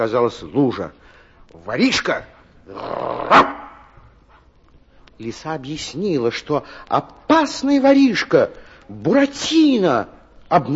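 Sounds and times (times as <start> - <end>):
speech: 0.0 - 3.5, 5.2 - 10.7
bulldog on duty barking: 3.3 - 3.8.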